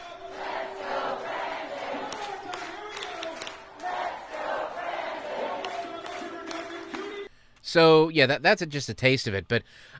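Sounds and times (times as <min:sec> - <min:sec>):
large crowd cheering in played video: 0:00.0 - 0:07.3
speech: 0:07.7 - 0:09.9.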